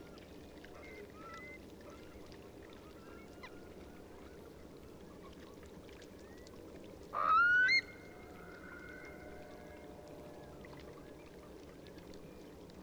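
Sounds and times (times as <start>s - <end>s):
Eurasian curlew flock calling while taking off: 7.2s - 9.6s.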